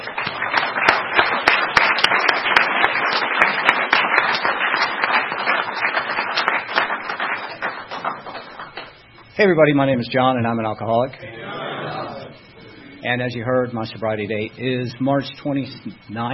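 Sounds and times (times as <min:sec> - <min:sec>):
audience at a recovery meeting applauding a speaker: 0:00.0 - 0:09.0
speech: 0:09.4 - 0:11.4, 0:13.0 - 0:16.3
laughter: 0:11.2 - 0:13.1.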